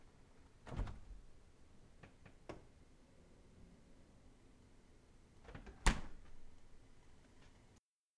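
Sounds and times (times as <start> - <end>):
fridge door opening and closing: 0.7 - 1.2, 5.5 - 6.4.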